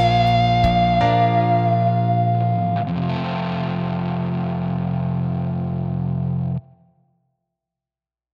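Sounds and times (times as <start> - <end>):
instrumental solo through Helix: 0.0 - 6.6.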